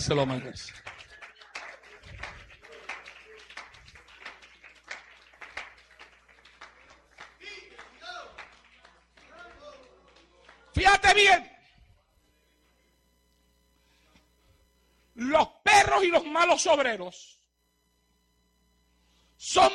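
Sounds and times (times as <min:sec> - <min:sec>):
speech: 0:00.0 - 0:01.0, 0:11.1 - 0:11.5, 0:16.0 - 0:17.4, 0:19.4 - 0:19.7
crowd clapping: 0:00.0 - 0:11.8.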